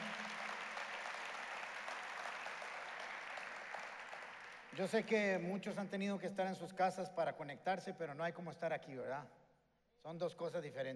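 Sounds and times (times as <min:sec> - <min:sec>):
audience applause: 0:00.0 - 0:05.2
speech: 0:04.7 - 0:09.4, 0:10.0 - 0:10.9.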